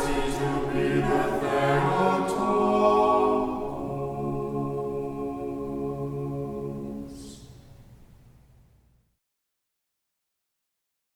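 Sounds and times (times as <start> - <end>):
choir chanting a Byzantine hymn in tone two: 0.0 - 7.5.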